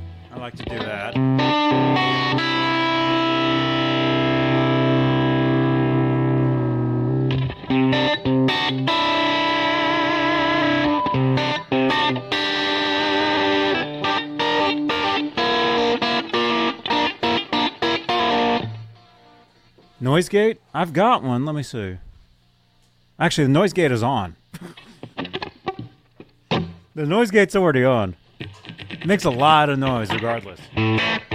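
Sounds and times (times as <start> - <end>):
electric guitar with delay and compression playing chords and strums: 0.0 - 19.0, 30.1 - 31.3
speech: 0.3 - 2.7, 20.2 - 22.1, 23.2 - 24.8, 27.0 - 28.2, 29.0 - 31.2.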